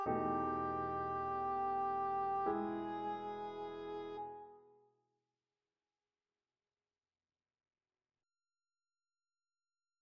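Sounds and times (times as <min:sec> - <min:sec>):
song accompaniment in E: 0:00.0 - 0:04.5.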